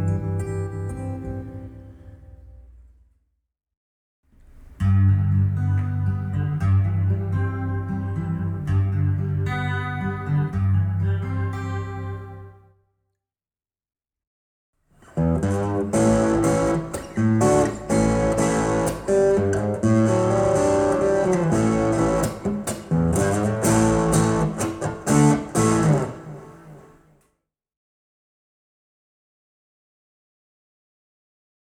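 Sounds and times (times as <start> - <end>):
acoustic guitar: 0.0 - 2.9, 4.3 - 12.7, 15.0 - 27.1.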